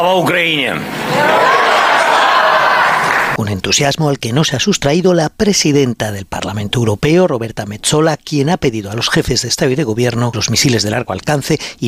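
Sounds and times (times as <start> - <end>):
speech: 0.0 - 1.5, 3.4 - 11.8
laughter: 0.9 - 3.4
applause from members of the European Parliament: 1.9 - 3.4.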